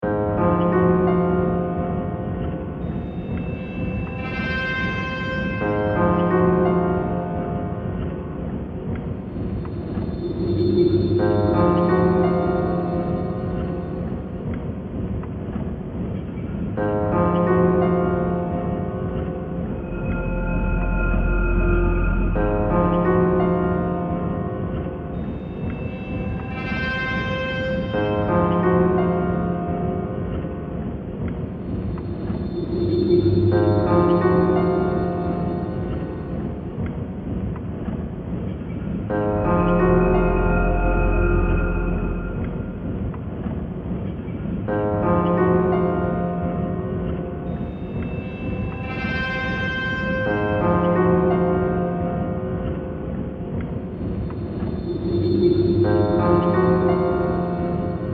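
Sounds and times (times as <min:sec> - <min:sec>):
dark eerie zombie-like music: 0:00.0 - 0:58.1.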